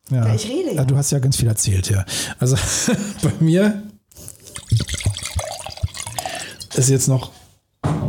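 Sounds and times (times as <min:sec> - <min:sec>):
speech: 0:00.1 - 0:04.3, 0:06.8 - 0:07.4
laughter: 0:02.5 - 0:03.7
wine pouring into a glass: 0:04.3 - 0:07.4.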